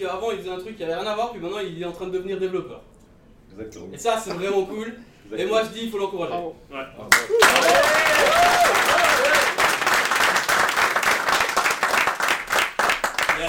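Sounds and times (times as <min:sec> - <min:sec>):
speech: 0:00.0 - 0:08.8
audience applause: 0:07.1 - 0:13.4.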